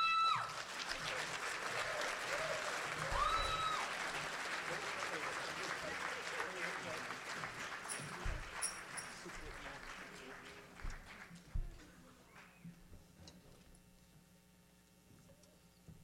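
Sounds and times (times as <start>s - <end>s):
audience applauding a musician coming on stage: 0.0s - 12.6s.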